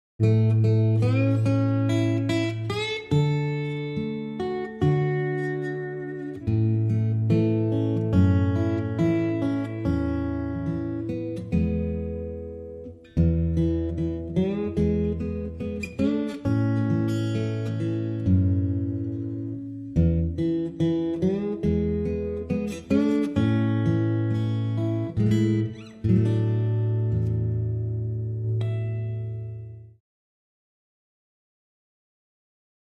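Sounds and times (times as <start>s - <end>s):
folk ballad: 0.2s - 29.9s.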